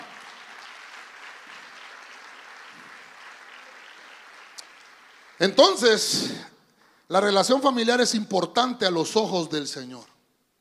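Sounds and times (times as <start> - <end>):
audience clapping: 0.0 - 6.1
speech: 5.4 - 6.5, 7.1 - 10.1.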